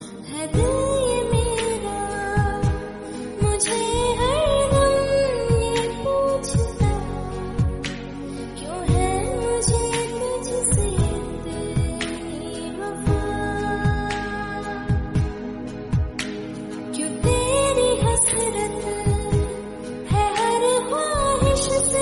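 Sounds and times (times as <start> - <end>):
Hindi sad music: 0.0 - 22.0.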